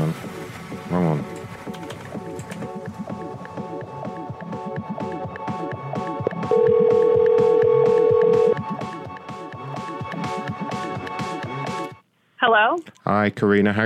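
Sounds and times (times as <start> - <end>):
rhythmic music: 0.0 - 12.1
speech: 0.9 - 1.4, 13.2 - 13.8
telephone tone during a call: 6.3 - 8.6.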